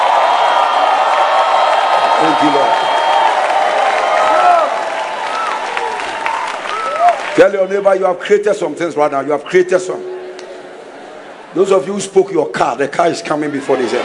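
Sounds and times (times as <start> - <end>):
audience clapping: 0.0 - 7.6
speech: 2.2 - 2.9, 7.4 - 10.2, 11.6 - 14.0.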